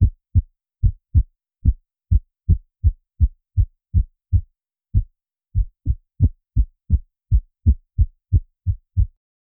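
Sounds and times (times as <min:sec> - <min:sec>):
heartbeat: 0:00.0 - 0:09.2.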